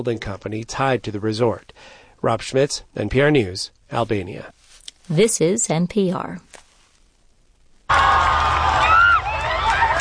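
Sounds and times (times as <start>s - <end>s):
speech: 0.0s - 6.6s
crowd cheering in the streets: 7.9s - 10.0s
high shouts and whoops: 7.9s - 10.0s.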